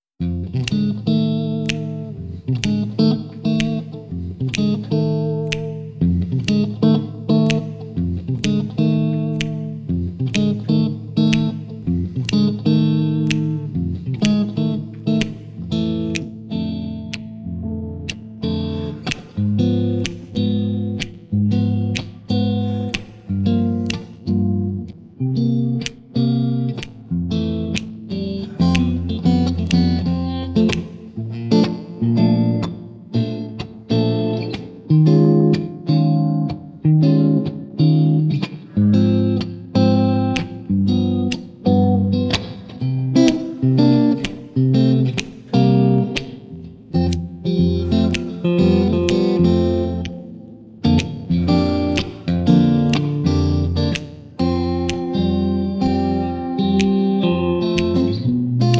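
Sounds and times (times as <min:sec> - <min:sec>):
guitar: 0:00.0 - 0:58.7
singing voice: 0:28.3 - 0:29.9.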